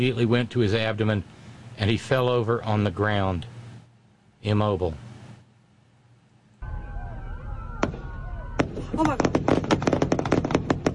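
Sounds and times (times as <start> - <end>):
speech: 0.0 - 3.6, 4.4 - 5.1, 9.0 - 9.4
gunshot: 7.8 - 10.9.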